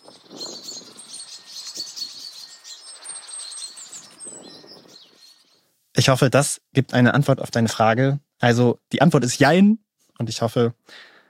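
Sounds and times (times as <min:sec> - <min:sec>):
agitated songbirds mobbing an owl: 0:00.0 - 0:05.6
speech: 0:06.0 - 0:11.1.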